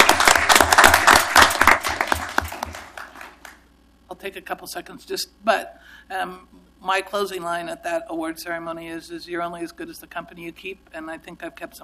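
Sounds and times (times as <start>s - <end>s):
round of applause: 0.0s - 3.6s
speech: 4.2s - 11.8s.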